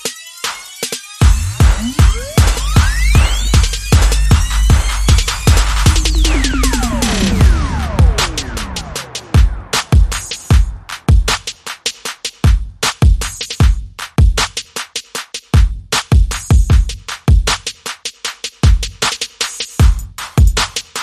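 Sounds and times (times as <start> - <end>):
drums: 0.0 - 21.0
bass: 1.2 - 10.9.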